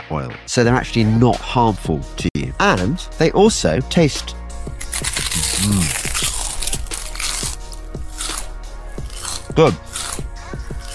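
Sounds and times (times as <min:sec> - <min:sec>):
speech: 0:00.1 - 0:04.4, 0:05.0 - 0:06.2, 0:09.6 - 0:09.9
crisps cooked in coconut oil crunching: 0:04.8 - 0:10.9.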